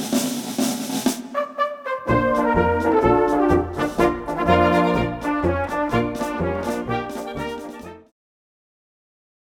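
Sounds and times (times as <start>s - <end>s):
brass band march with solo drummer: 0.0s - 8.1s.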